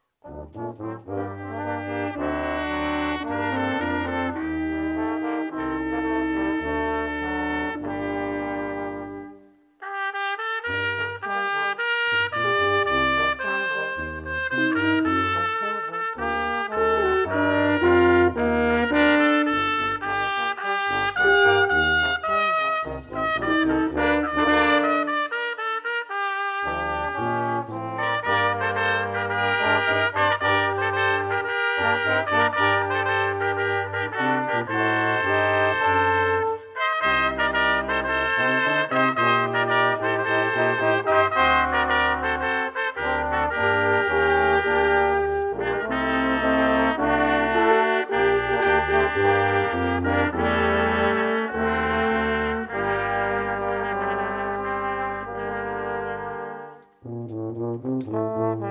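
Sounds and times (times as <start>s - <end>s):
brass players: 0.0s - 58.6s.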